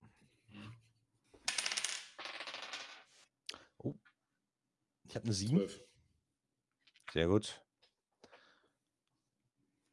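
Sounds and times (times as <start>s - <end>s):
dice clattering across a hard surface: 1.5s - 3.2s
speech: 5.2s - 5.9s, 7.1s - 7.6s.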